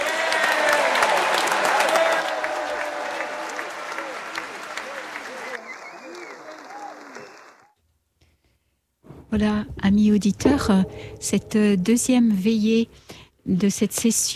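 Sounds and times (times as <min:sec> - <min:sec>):
audience applauding: 0:00.0 - 0:07.8
speech: 0:09.3 - 0:14.3.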